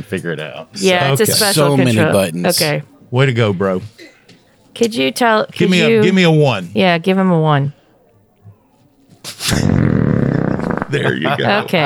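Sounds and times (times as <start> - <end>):
laughter: 0.0 - 2.7, 10.8 - 11.8
speech: 0.0 - 4.1, 4.8 - 7.8, 9.3 - 10.0, 10.9 - 11.8
person belching: 9.4 - 11.2.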